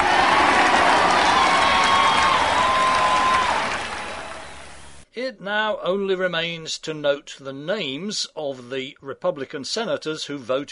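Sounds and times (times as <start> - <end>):
whistles and whoops: 0.0 - 4.7
large crowd cheering and applauding: 0.0 - 5.0
speech: 5.5 - 10.6.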